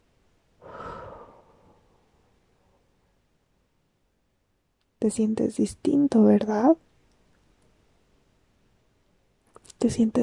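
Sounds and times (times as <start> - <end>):
slow exhale during a guided breathing meditation: 0.6 - 2.9
speech: 5.0 - 6.9, 9.8 - 10.2.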